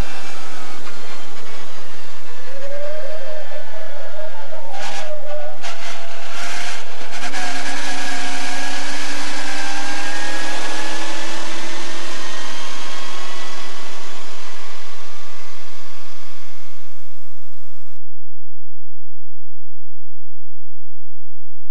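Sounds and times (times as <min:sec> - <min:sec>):
Alfa Romeo 8C 2300 engine: 0:00.0 - 0:18.0.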